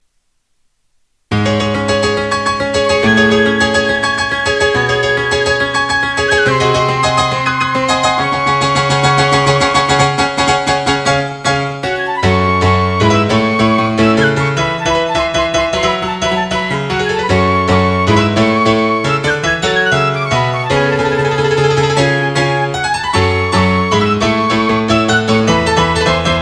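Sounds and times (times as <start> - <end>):
piano concertino: 1.3 - 26.4.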